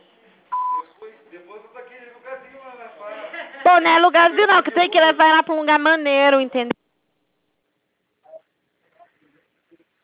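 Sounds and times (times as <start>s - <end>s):
voicemail recording beep: 0.5s - 0.8s
speech: 2.8s - 6.8s.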